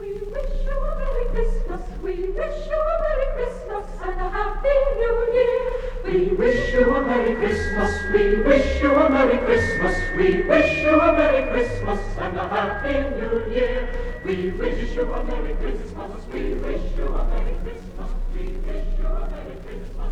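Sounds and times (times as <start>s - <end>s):
chorus singing: 0.4s - 20.1s
orchestra playing: 6.4s - 16.1s.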